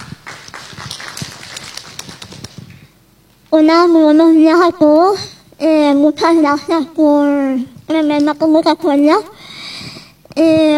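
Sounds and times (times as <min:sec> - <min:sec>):
audience applause: 0:00.0 - 0:02.6
speech: 0:03.5 - 0:09.3, 0:10.4 - 0:10.7.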